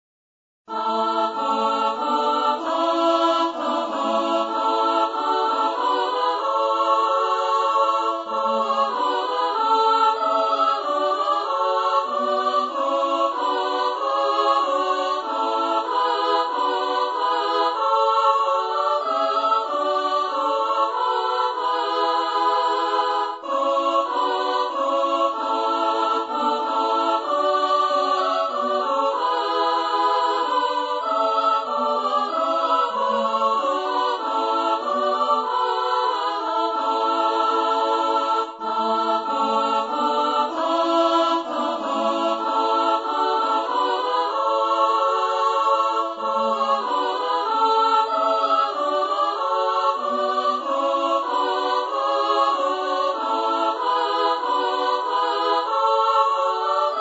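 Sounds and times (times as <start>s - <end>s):
SSA choir singing: 0.7s - 56.9s.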